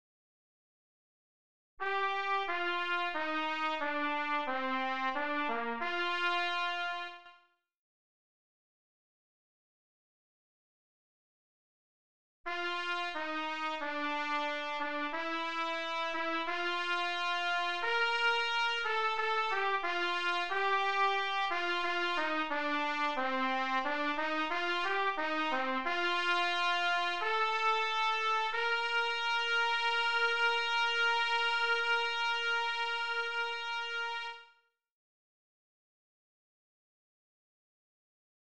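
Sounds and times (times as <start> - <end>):
trumpet playing: 1.8 - 7.4, 12.5 - 34.6.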